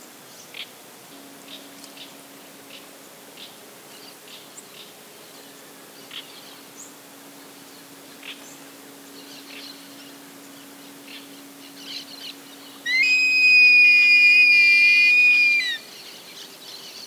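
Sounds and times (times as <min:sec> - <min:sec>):
Buteogallus urubitinga great black hawk calling: 0:12.9 - 0:15.8.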